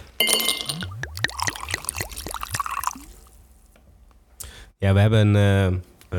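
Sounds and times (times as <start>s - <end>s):
speech: 0.2s - 0.6s, 4.8s - 5.9s
glass clinks: 0.2s - 0.9s
whisky glugging from a bottle into a glass: 0.4s - 3.6s.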